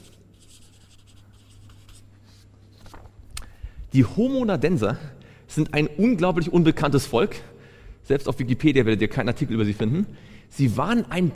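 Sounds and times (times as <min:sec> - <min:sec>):
handwriting scratching across a surface: 0:00.0 - 0:02.5
speech: 0:03.9 - 0:07.5, 0:08.1 - 0:11.3.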